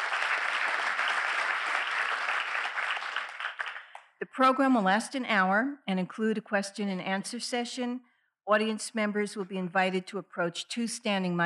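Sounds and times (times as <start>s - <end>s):
audience applause at an evening lecture event: 0.0s - 4.1s
speech: 4.2s - 11.4s.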